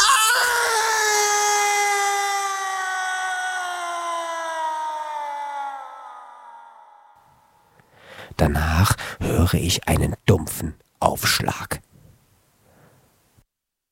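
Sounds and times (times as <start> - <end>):
human scream: 0.0 - 7.2
speech: 8.4 - 11.8.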